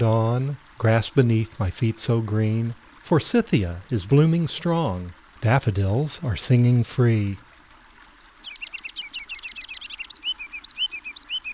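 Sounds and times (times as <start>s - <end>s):
speech: 0.0s - 7.5s
kinglet singing: 6.2s - 8.5s.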